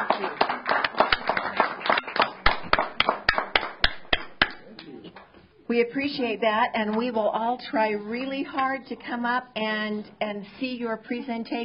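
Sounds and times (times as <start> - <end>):
audience applause: 0.0 - 4.6
speech: 5.7 - 11.6.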